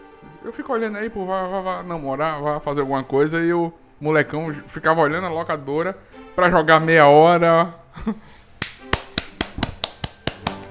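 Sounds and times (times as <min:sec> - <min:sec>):
speech: 0:00.2 - 0:08.4
hand clapping: 0:08.3 - 0:10.6.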